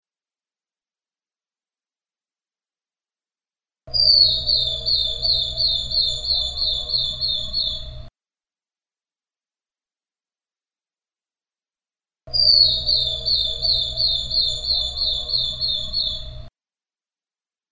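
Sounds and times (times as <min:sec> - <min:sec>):
bird singing one long high pure whistle: 0:03.9 - 0:08.1, 0:12.3 - 0:16.5.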